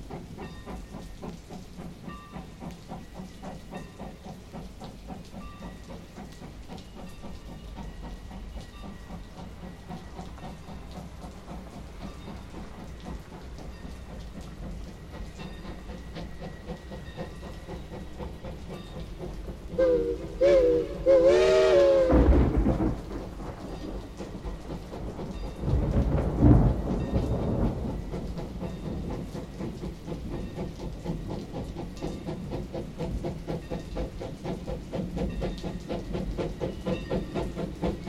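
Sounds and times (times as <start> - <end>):
steam train running: 0.0 - 38.0
thunder: 22.0 - 23.8, 25.6 - 27.9.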